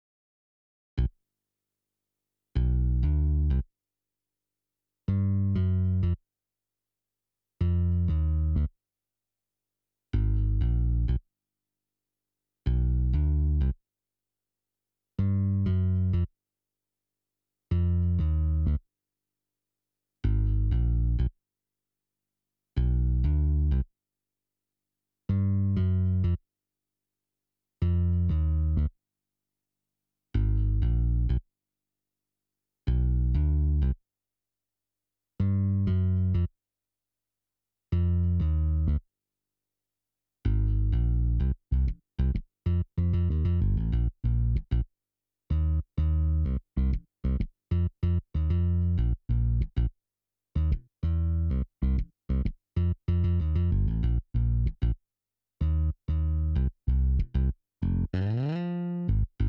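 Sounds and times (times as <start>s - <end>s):
bass: 2.6s - 3.7s, 5.1s - 6.2s, 7.6s - 8.8s, 10.1s - 11.3s, 12.6s - 13.8s, 15.2s - 16.4s, 17.7s - 18.9s, 20.2s - 21.4s, 22.8s - 23.9s, 25.3s - 26.4s, 27.8s - 29.0s, 30.3s - 31.5s, 32.9s - 34.0s, 35.4s - 36.6s, 37.9s - 39.1s, 40.4s - 44.9s, 45.5s - 50.0s, 50.6s - 55.0s, 55.6s - 59.4s.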